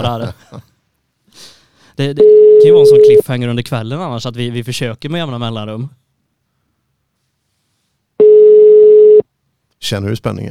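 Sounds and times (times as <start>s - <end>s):
laughter: 0.0s - 0.7s
speech: 0.0s - 0.7s, 1.4s - 6.0s, 9.8s - 10.4s
telephone call tone when calling a mobile phone: 2.2s - 3.2s, 8.2s - 9.2s.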